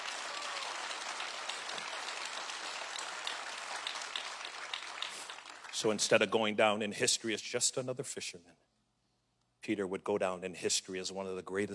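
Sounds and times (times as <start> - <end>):
audience hand clapping: 0.0 - 6.3
speech: 5.8 - 8.6, 9.6 - 11.7.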